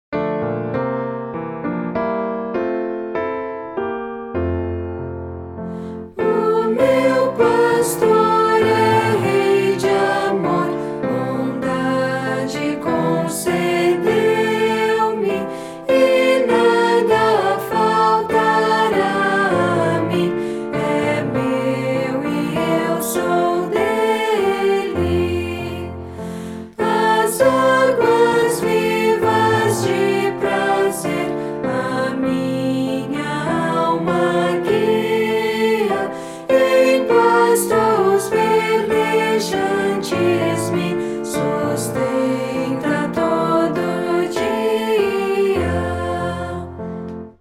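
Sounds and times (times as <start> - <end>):
piano: 0.1 - 47.4
person singing: 6.2 - 26.0, 26.8 - 46.7.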